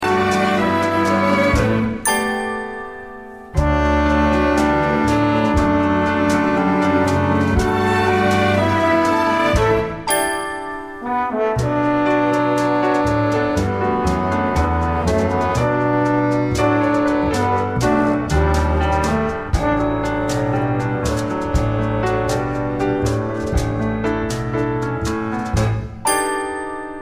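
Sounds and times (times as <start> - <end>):
musical accompaniment: 0.0 - 27.0.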